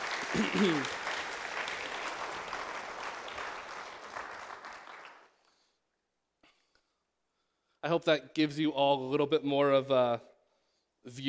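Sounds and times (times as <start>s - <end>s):
audience applause: 0.0s - 5.4s
speech: 0.3s - 1.0s, 7.8s - 10.3s, 11.0s - 11.2s.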